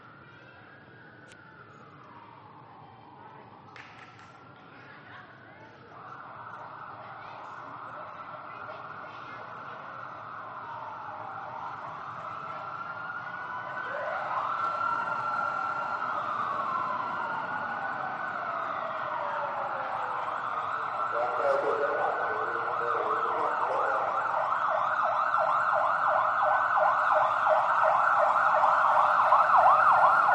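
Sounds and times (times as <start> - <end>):
police sirens of a presidential motorcade convoy escort: 0.0 - 30.3
police cars and motorcycles of a president motorcade passing: 10.2 - 30.3.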